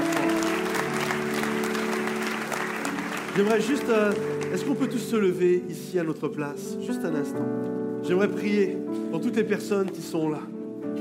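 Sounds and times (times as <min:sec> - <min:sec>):
audience applause: 0:00.0 - 0:05.0
speech: 0:03.4 - 0:10.6.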